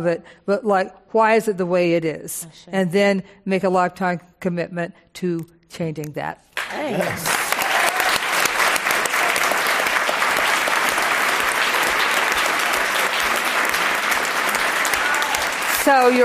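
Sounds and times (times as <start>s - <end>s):
speech: 0.0s - 7.4s, 15.9s - 16.2s
audience applause: 6.6s - 16.2s.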